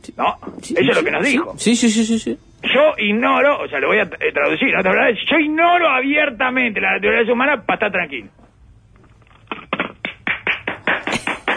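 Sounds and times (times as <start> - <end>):
speech: 0.0 - 8.4
hand clapping: 9.5 - 11.5.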